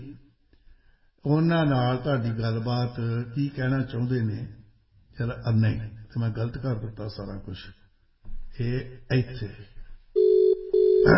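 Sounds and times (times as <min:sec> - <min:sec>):
speech: 0:01.2 - 0:04.6, 0:05.2 - 0:07.8, 0:08.6 - 0:09.7
ringback tone of an outgoing telephone call: 0:10.2 - 0:11.1.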